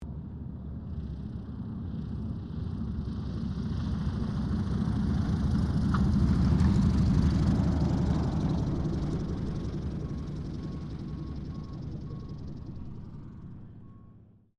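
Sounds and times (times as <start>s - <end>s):
T-28D Trojan aircraft landing: 0.0s - 14.4s.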